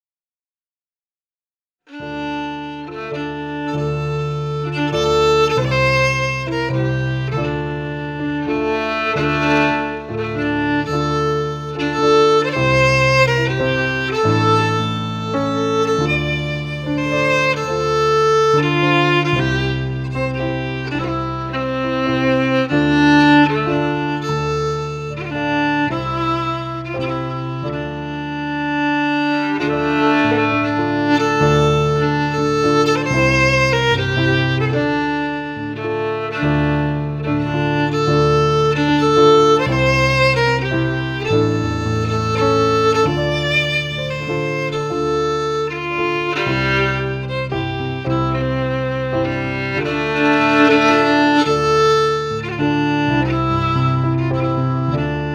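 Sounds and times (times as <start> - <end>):
fiddle: 1.9 - 55.3
piano: 1.9 - 55.3.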